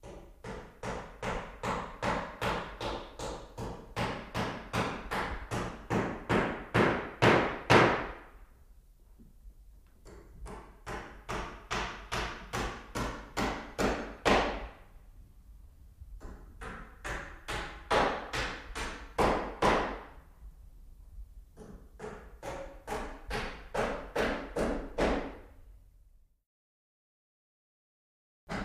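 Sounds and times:
hammering nails in an interior: 0.0 - 8.4, 10.0 - 14.8, 16.2 - 20.2, 21.6 - 25.6.

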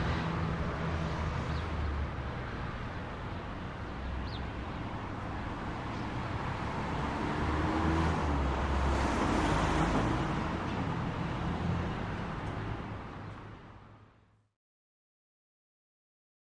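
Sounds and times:
medium city traffic with various vehicle movement: 0.0 - 14.5
birds: 3.3 - 4.7.

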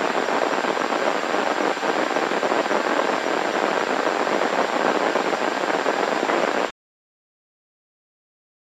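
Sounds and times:
spitting static: 0.0 - 6.7.

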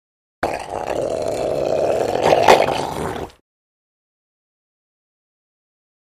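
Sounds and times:
seal or sea lion roaring: 0.4 - 3.4.

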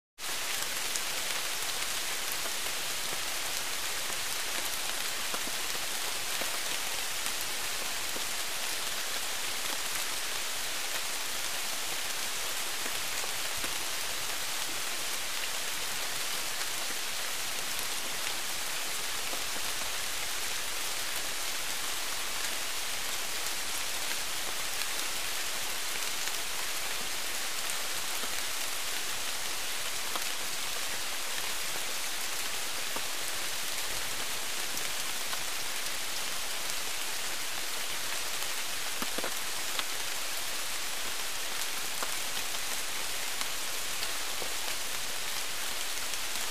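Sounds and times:
light tropical rain: 0.2 - 46.4.

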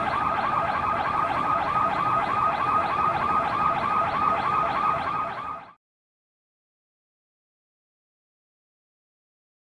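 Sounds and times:
distant alarm: 0.0 - 5.8.

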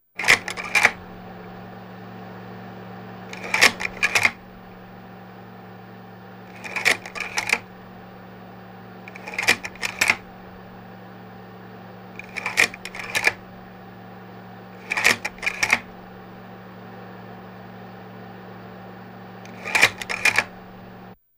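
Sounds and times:
slide projector fan: 0.0 - 21.2
slide projector slide change: 0.2 - 1.6, 3.2 - 5.0, 6.4 - 8.0, 9.0 - 10.9, 11.7 - 17.5, 18.2 - 21.2.

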